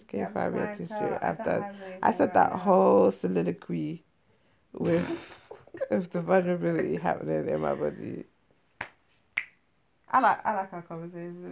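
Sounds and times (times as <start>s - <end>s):
speech: 0.1s - 4.1s, 4.7s - 8.3s, 10.1s - 11.5s
hand clap: 8.8s - 9.6s.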